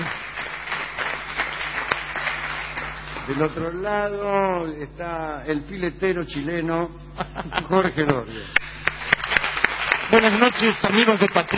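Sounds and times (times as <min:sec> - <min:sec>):
audience applause: 0:00.0 - 0:03.7, 0:08.5 - 0:11.5
speech: 0:03.3 - 0:08.6, 0:10.1 - 0:11.5
laughter: 0:07.2 - 0:08.8.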